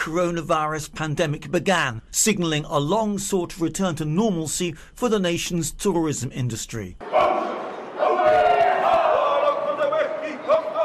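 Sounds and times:
speech: 0.0 - 7.2
Maori performers group chant with sharp cries at a welcoming ceremony: 7.0 - 10.8.

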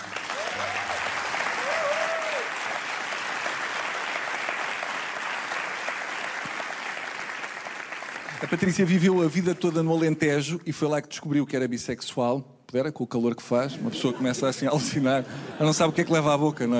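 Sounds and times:
audience applause: 0.0 - 9.2
whoops: 0.2 - 2.8
speech: 8.4 - 16.7.

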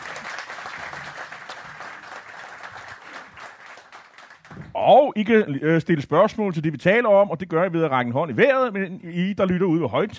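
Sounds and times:
live studio audience applauding: 0.0 - 4.8
speech: 4.8 - 10.1.

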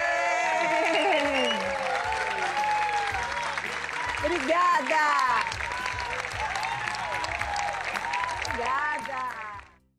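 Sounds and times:
faint cheering voices: 0.0 - 4.3, 5.4 - 8.6
audience applause: 0.0 - 9.8
speech: 4.3 - 5.4.

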